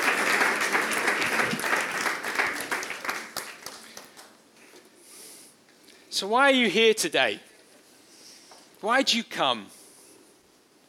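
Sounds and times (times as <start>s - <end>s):
audience applause: 0.0s - 4.4s
speech: 6.2s - 7.5s, 8.8s - 9.8s.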